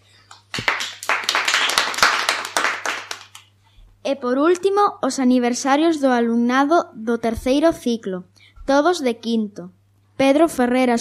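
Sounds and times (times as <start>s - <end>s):
audience applause: 0.5s - 3.4s
speech: 4.1s - 11.0s.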